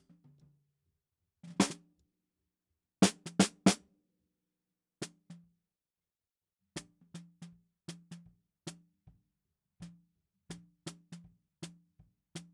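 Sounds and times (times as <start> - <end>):
snare drum: 1.6 - 1.8, 3.0 - 3.8.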